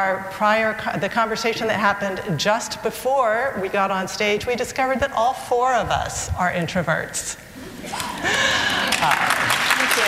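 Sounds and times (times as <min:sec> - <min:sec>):
speech: 0:00.0 - 0:10.0
audience applause: 0:07.9 - 0:10.0.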